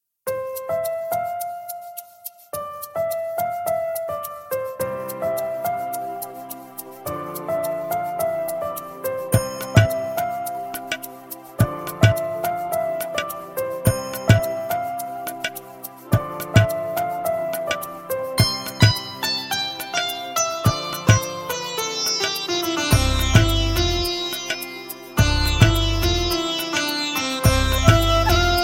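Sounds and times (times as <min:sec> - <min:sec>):
background music melody: 0:00.3 - 0:28.6.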